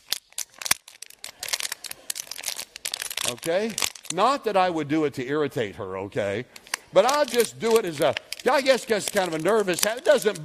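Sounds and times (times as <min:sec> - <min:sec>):
empty plastic water bottle being crushed and twisted: 0:00.0 - 0:04.2, 0:06.6 - 0:10.4
speech: 0:03.3 - 0:10.4.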